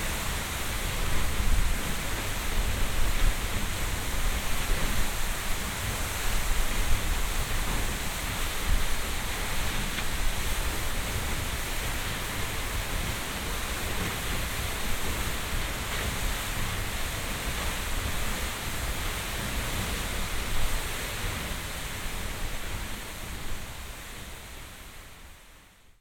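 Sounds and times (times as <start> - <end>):
waterfall heard from behind: 0.0 - 25.9.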